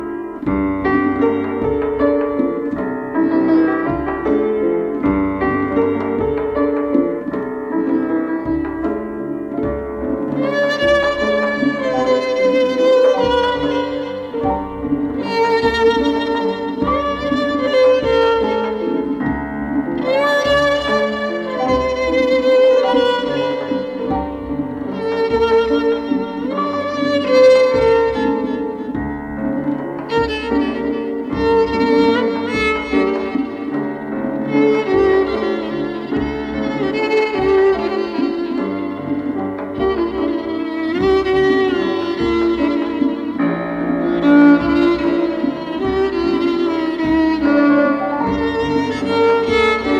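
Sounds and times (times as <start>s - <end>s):
violin: 0.0s - 49.9s.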